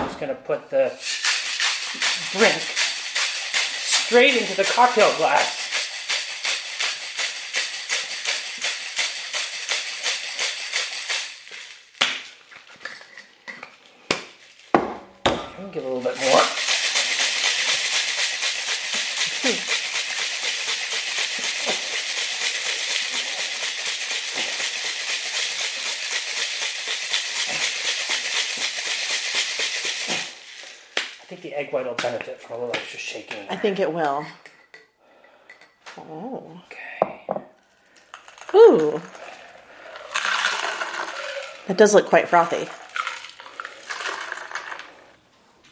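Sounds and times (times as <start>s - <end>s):
speech: 0.2s - 1.2s, 1.9s - 2.8s, 4.1s - 5.6s, 15.7s - 16.6s, 31.8s - 34.4s, 36.0s - 36.8s, 38.5s - 39.2s, 41.7s - 42.8s
cocktail shaker shaken hard with cracked ice: 1.0s - 13.4s, 15.7s - 31.6s, 37.8s - 45.2s.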